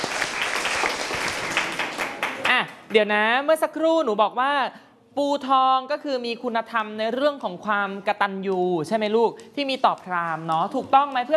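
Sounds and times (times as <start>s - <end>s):
classroom group clapping: 0.0s - 3.0s
speech: 2.9s - 11.3s.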